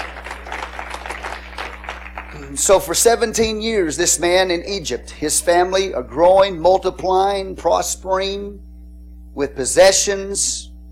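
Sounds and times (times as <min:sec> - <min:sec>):
audience clapping hands in praise: 0:00.0 - 0:03.1
speech: 0:02.4 - 0:08.7, 0:09.4 - 0:10.9.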